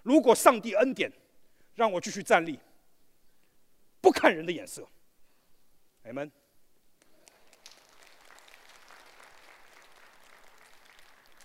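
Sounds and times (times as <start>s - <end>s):
speech: 0.1s - 1.2s, 1.8s - 2.7s, 4.0s - 5.0s, 6.0s - 6.4s
audience applause: 7.3s - 11.4s.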